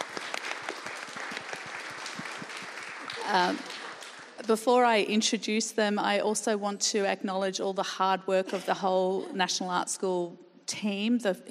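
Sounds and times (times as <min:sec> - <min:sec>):
audience applause: 0:00.0 - 0:04.4
speech: 0:03.3 - 0:03.8, 0:04.4 - 0:11.4.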